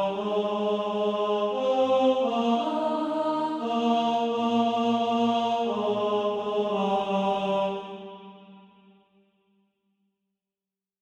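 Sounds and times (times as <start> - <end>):
tenor singing: 0.0 - 8.3.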